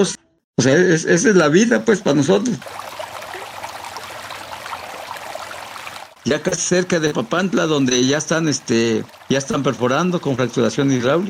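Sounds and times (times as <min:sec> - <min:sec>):
speech: 0:00.0 - 0:02.9, 0:06.3 - 0:11.2
river water trickling and flowing: 0:01.4 - 0:11.2.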